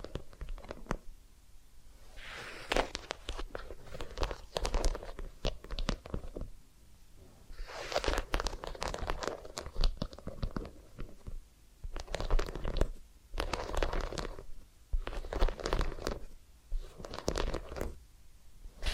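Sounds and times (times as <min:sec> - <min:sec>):
massage and ear cleaning rubbing and crackling scratches: 0:02.1 - 0:06.5, 0:07.5 - 0:18.0.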